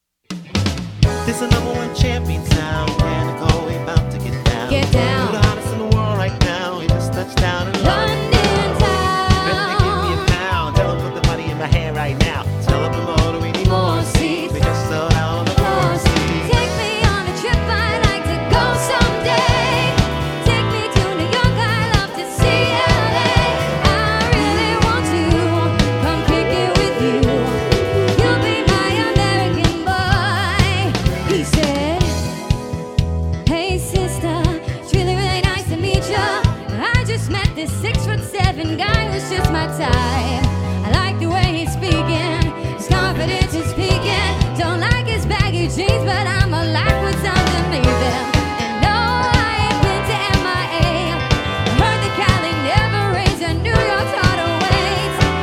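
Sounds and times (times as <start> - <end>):
variety band playing: 0.3 - 55.4.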